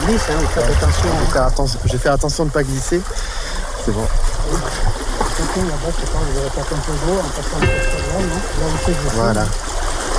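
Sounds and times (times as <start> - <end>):
river water flowing while wading across: 0.0 - 10.1
speech: 0.1 - 9.8.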